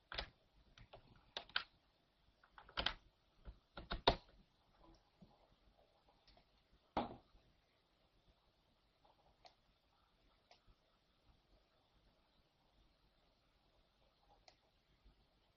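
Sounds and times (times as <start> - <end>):
computer mouse clicking: 0.0 - 1.8, 2.4 - 4.4, 9.4 - 9.6, 14.4 - 14.7
computer keyboard tapping: 2.5 - 4.3.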